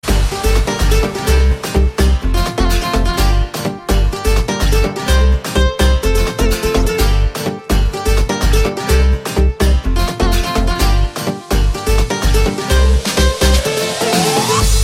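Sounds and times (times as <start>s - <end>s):
guitar: 0.0s - 14.8s.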